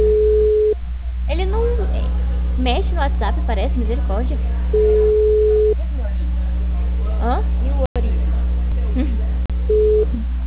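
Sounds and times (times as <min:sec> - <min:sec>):
telephone busy signal, all lines busy: 0:00.0 - 0:00.8, 0:04.8 - 0:05.8, 0:09.7 - 0:10.2
low electrical hum: 0:00.0 - 0:10.4
speech: 0:02.7 - 0:05.7, 0:07.2 - 0:07.9.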